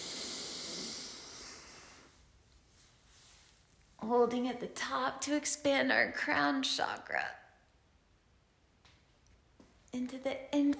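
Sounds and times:
deep breath in during a guided breathing exercise: 0:00.0 - 0:02.2
speech: 0:04.1 - 0:07.4, 0:09.9 - 0:10.7.

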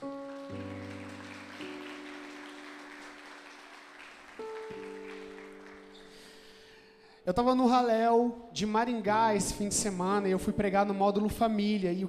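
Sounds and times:
audience applause: 0:00.0 - 0:06.6
speech: 0:07.3 - 0:12.0.

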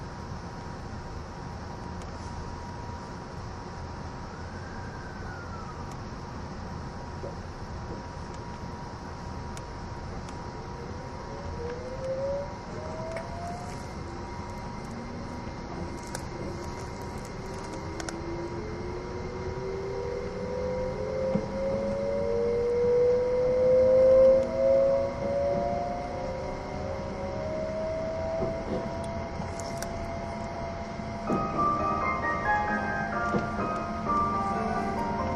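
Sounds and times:
steady hum: 0:00.0 - 0:35.3
E261 series Saphir Odoriko train motor whine: 0:09.6 - 0:35.3.

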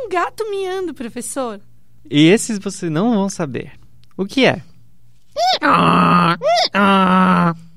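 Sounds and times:
speech: 0:00.1 - 0:04.7, 0:05.6 - 0:07.6
donkey braying: 0:05.4 - 0:07.6.

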